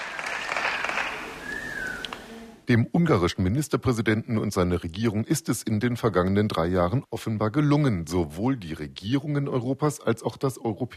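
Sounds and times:
crowd applause at the end of a speech by Viktor Orbán: 0.0s - 2.3s
sustained whistle: 1.4s - 2.2s
speech: 2.7s - 10.9s.

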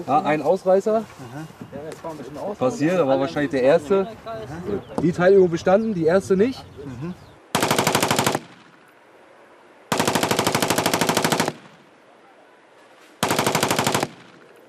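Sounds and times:
speech: 0.0s - 7.2s
automatic rifle burst fire: 7.5s - 8.9s, 9.9s - 11.9s, 13.2s - 14.6s.

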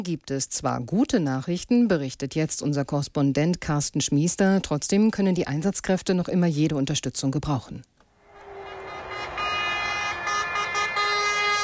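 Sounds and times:
speech: 0.0s - 8.0s
fire engine sirens: 8.1s - 11.6s
fire engines honking: 8.2s - 11.6s.

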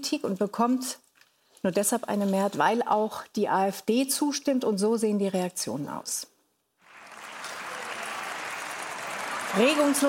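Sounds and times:
speech: 0.0s - 6.3s, 9.5s - 10.0s
parliamentary faction applauding and cheering: 6.8s - 10.0s.

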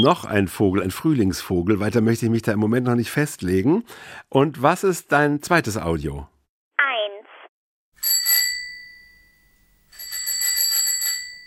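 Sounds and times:
speech: 0.0s - 6.3s
bicycle bell ringing: 8.0s - 11.4s.

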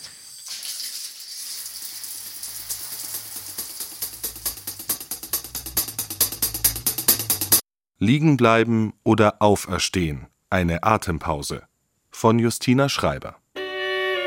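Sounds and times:
running shower water: 0.0s - 5.6s
rhythmic pulsing beat: 3.4s - 7.6s
speech: 8.0s - 13.4s.

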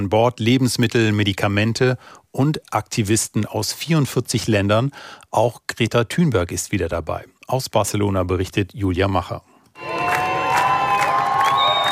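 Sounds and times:
speech: 0.0s - 10.0s
applause: 9.8s - 11.8s
thousands of people cheering as sailing boats leave the harbour of Barcelona: 9.8s - 11.8s.

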